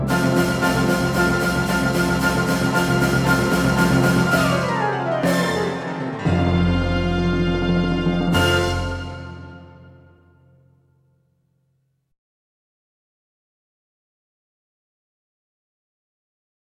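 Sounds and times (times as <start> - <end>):
piano: 0.0 - 10.9.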